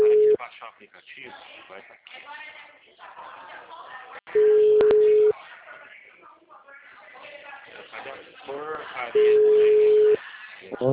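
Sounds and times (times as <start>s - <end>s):
telephone busy tone after a dropped call: 0.0s - 0.4s, 4.4s - 5.3s, 9.2s - 10.2s
speech: 0.7s - 3.9s, 8.5s - 9.8s.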